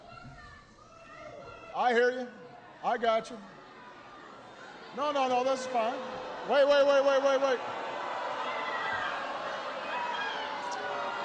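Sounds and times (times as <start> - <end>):
speech: 1.8 - 3.6, 5.0 - 7.7
large crowd booing: 3.7 - 11.2.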